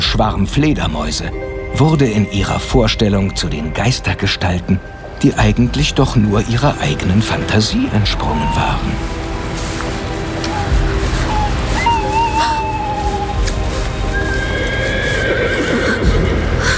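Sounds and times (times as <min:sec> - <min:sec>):
speech: 0:00.1 - 0:09.2
horse whinnying: 0:10.5 - 0:16.6.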